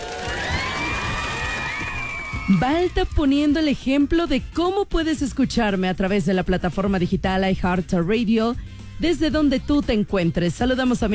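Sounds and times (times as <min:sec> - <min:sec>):
applause: 0:00.0 - 0:03.6
speech: 0:02.5 - 0:11.1.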